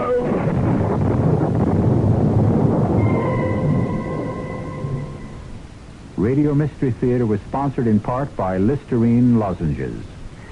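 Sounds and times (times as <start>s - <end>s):
thunderstorm with rolling thunder: 0.0s - 6.2s
speech: 6.2s - 10.2s.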